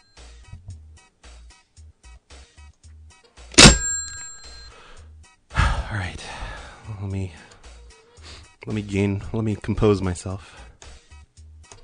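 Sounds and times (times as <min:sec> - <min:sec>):
desk bell slam: 0:03.6 - 0:04.7
speech: 0:05.9 - 0:07.5, 0:08.7 - 0:10.6.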